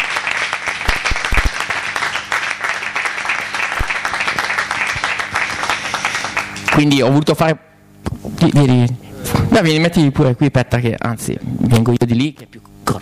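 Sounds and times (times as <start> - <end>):
audience applause: 0.0 - 6.8
speech: 6.8 - 7.7, 8.3 - 12.6.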